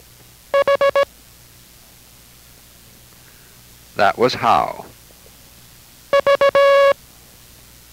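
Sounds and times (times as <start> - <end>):
Morse code letter V tones: 0.5 - 1.1, 6.1 - 7.0
speech: 4.0 - 4.9.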